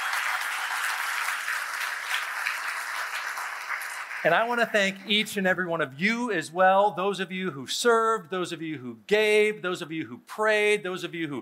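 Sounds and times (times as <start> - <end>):
audience applause: 0.0 - 5.0
speech: 4.2 - 11.4.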